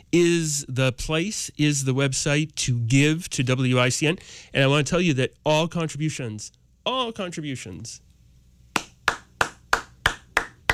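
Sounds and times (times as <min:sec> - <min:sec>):
speech: 0:00.1 - 0:08.1
one person clapping during a fundraising appeal: 0:08.7 - 0:10.7.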